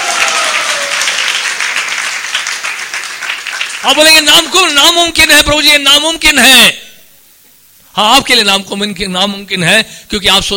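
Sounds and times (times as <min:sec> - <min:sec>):
audience clapping: 0:00.0 - 0:05.0
speech: 0:03.8 - 0:06.8, 0:08.0 - 0:10.5.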